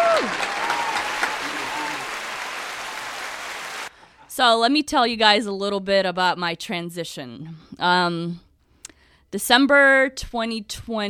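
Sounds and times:
crowd applauding: 0:00.0 - 0:03.9
speech: 0:04.4 - 0:08.4, 0:09.3 - 0:11.0.

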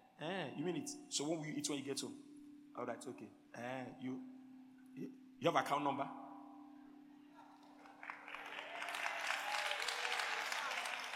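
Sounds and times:
speech: 0:00.2 - 0:04.4, 0:05.0 - 0:06.2
audience clapping: 0:07.7 - 0:11.1.

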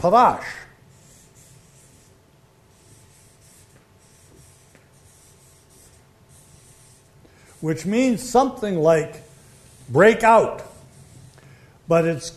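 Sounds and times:
speech: 0:00.0 - 0:00.6, 0:07.6 - 0:09.2, 0:09.9 - 0:10.7, 0:11.9 - 0:12.3
writing a word down by hand: 0:00.9 - 0:07.2, 0:09.3 - 0:11.4.

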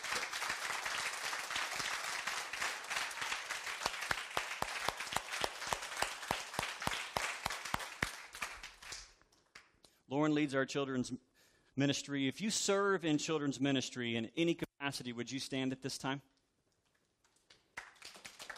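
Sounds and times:
audience clapping: 0:00.0 - 0:09.8, 0:17.2 - 0:18.5
speech: 0:10.1 - 0:16.3.

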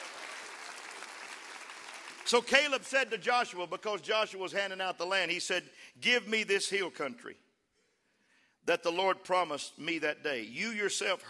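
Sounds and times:
audience clapping hands: 0:00.0 - 0:03.2
speech: 0:02.3 - 0:07.4, 0:08.7 - 0:11.2.

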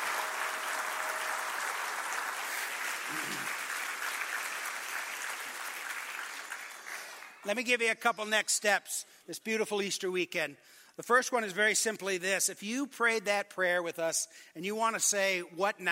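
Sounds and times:
audience applause: 0:00.0 - 0:07.5
speech: 0:07.4 - 0:15.9.

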